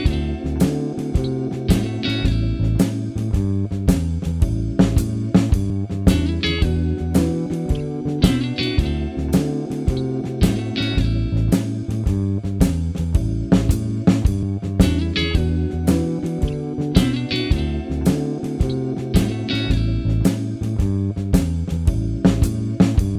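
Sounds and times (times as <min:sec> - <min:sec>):
blues music in E7 D7 A7 chords: 0:00.0 - 0:23.1.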